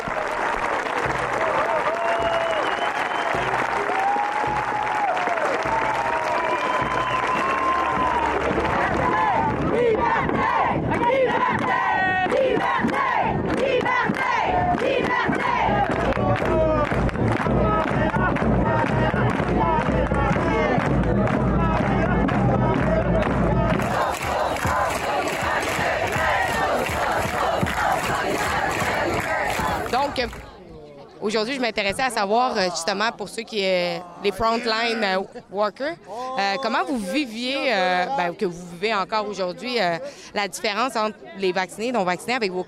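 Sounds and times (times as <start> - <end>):
clapping and cheering: 0.0 - 30.6
protest march crowd chanting and shouting: 3.4 - 42.6
speech: 31.4 - 42.6.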